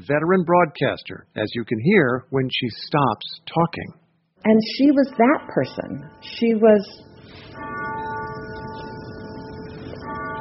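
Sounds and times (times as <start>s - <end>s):
speech: 0.0s - 7.8s
grandfather clock ringing: 4.8s - 10.3s.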